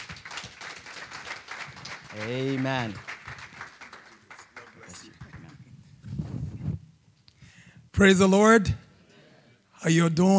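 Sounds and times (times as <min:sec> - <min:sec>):
church congregation applauding to welcome the pastor: 0:00.0 - 0:05.8
speech: 0:02.2 - 0:03.1, 0:08.0 - 0:08.8, 0:09.8 - 0:10.3.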